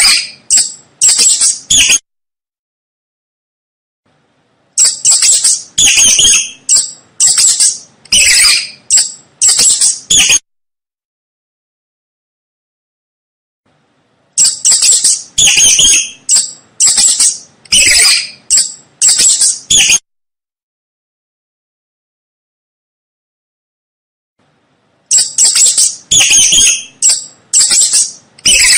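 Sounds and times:
mouse squeaking: 0:00.0 - 0:02.0, 0:04.8 - 0:10.4, 0:14.4 - 0:20.0, 0:25.1 - 0:28.7.

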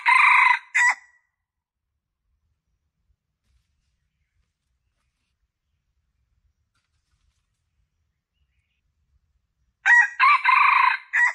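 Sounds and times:
Red junglefowl crowing: 0:00.0 - 0:01.1, 0:09.8 - 0:11.3.

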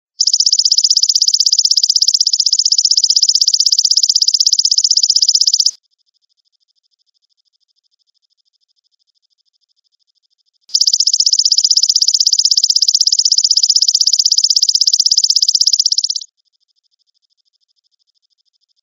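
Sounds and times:
grasshopper trilling: 0:00.2 - 0:05.8, 0:10.7 - 0:16.3.

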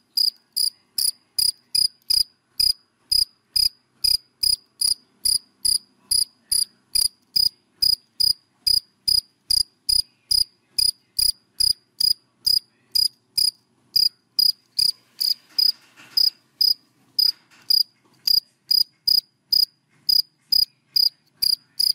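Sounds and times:
cricket chirping: 0:00.2 - 0:21.9
faint rustling: 0:14.8 - 0:18.2.

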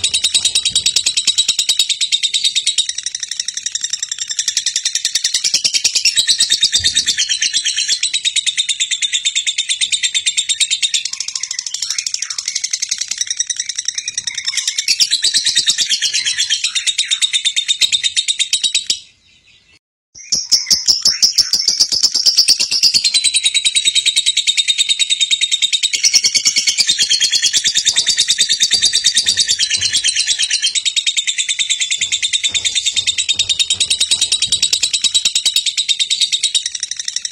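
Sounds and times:
champion lovebird singing: 0:00.0 - 0:37.3.

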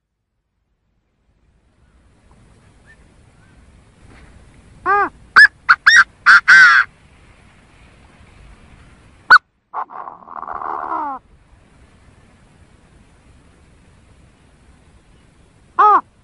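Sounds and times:
Chinese francolin harsh calls: 0:04.8 - 0:07.0, 0:09.3 - 0:11.4, 0:14.2 - 0:16.2.

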